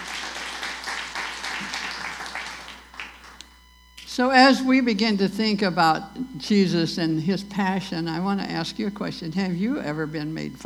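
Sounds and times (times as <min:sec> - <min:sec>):
audience applause at a church gathering: 0:00.0 - 0:03.4
speech: 0:04.2 - 0:10.6.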